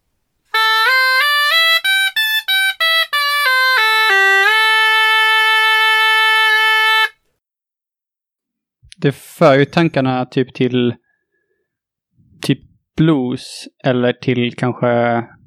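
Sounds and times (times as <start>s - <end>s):
bright buzzy synth-like five-note scale melody: 0.5s - 7.1s
speech: 9.0s - 11.0s, 12.5s - 15.3s.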